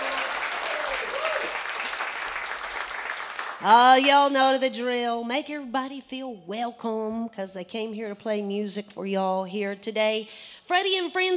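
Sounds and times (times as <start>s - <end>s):
audience applause: 0.0s - 3.8s
speech: 3.6s - 11.3s.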